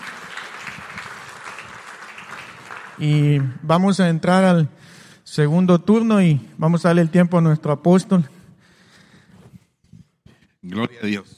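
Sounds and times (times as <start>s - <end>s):
audience applauding: 0.0s - 3.9s
speech: 3.0s - 8.4s.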